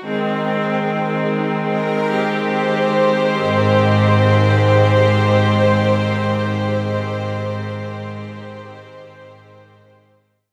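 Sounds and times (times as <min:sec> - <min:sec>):
session strings playing: 0:00.0 - 0:09.9.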